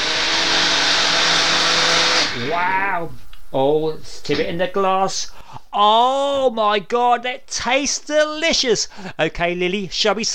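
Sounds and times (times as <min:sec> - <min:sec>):
blender blitzing lime smoothie: 0:00.0 - 0:02.6
speech: 0:03.0 - 0:10.3.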